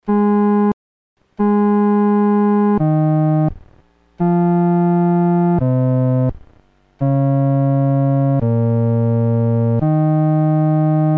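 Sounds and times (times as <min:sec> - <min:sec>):
solo instrument: 0:01.4 - 0:03.6, 0:04.2 - 0:06.4, 0:07.0 - 0:11.1.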